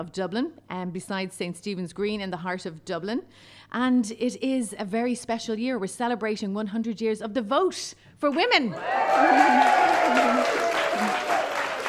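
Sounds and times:
speech: 0.0 - 11.4
celebratory audience clapping at the Little Museum of Dublin: 8.8 - 11.8.

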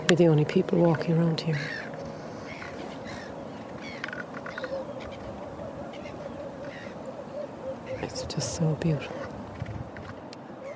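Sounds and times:
birds calling: 0.0 - 10.7
speech: 0.1 - 1.8, 8.3 - 9.3.

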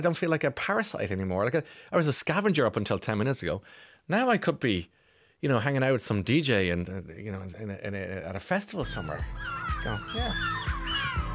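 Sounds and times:
speech: 0.0 - 10.7
seagull call: 8.9 - 11.3.

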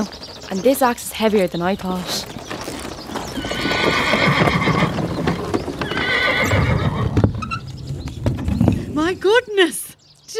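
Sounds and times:
speech: 0.0 - 2.4, 9.2 - 9.8
hooves clip-clopping from a carriage drawn by four black horses: 0.0 - 9.3
horse whinnies: 3.2 - 7.7.

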